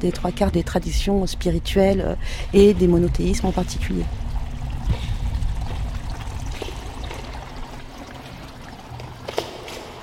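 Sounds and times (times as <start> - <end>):
speech: 0.0 - 4.2
small stream flowing: 2.5 - 10.0.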